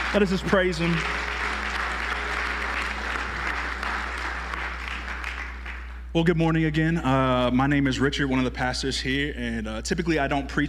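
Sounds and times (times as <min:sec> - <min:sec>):
audience applause: 0:00.0 - 0:06.1
speech: 0:00.1 - 0:01.3, 0:06.1 - 0:10.6.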